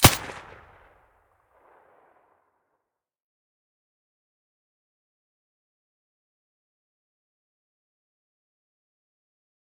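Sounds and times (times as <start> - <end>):
suppressed gunshot: 0.0 - 0.8.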